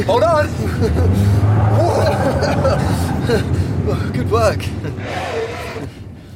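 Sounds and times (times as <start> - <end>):
speech: 0.0 - 5.4
pickup truck engine drone while drifting: 0.0 - 6.3
laughter: 0.5 - 3.9.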